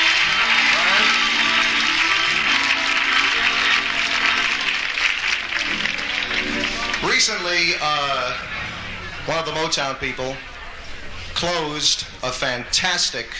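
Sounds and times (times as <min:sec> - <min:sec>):
sustained audience applause: 0:00.0 - 0:07.8
faint voices and cheers: 0:00.0 - 0:12.2
speech: 0:07.4 - 0:08.6, 0:09.3 - 0:10.5, 0:11.4 - 0:13.3.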